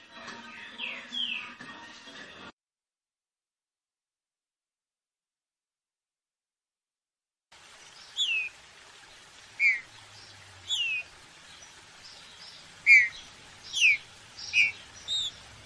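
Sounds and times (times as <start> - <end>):
steady hiss: 7.6 - 15.6
green-winged saltator whistled notes: 9.6 - 9.8, 10.7 - 11.1, 12.8 - 15.4.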